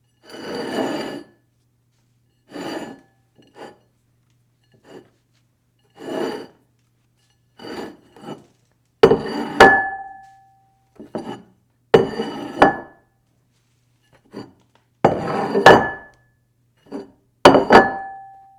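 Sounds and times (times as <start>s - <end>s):
dish sliding on table: 0.3s - 1.4s, 2.5s - 3.9s, 5.9s - 6.6s, 7.6s - 9.7s, 11.0s - 12.9s, 15.1s - 16.1s.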